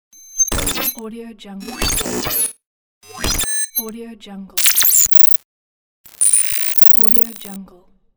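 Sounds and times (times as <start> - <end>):
short glitch: 0.2 - 1.0, 1.6 - 3.9, 4.6 - 5.4, 6.1 - 7.6.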